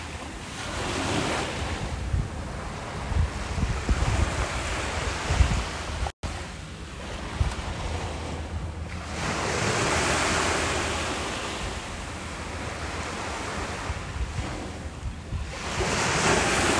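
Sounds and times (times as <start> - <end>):
ocean beach: 0.0 - 16.7.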